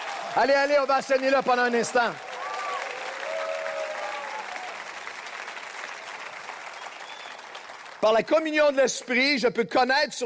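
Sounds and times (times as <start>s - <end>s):
congregation cheering and shouting at a church service: 0.0s - 8.2s
congregation applauding at a church service: 0.0s - 9.4s
speech: 0.4s - 2.3s, 8.0s - 10.2s.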